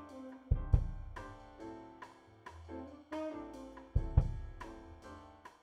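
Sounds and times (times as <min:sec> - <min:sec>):
processed kick drum mix with high-pass filter and EQ: 0:00.6 - 0:01.2, 0:04.0 - 0:04.6.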